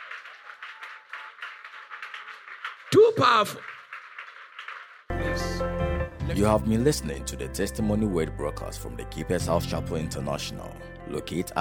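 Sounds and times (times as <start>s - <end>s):
audience clapping: 0.0s - 5.6s
speech: 2.9s - 3.8s, 6.3s - 11.5s.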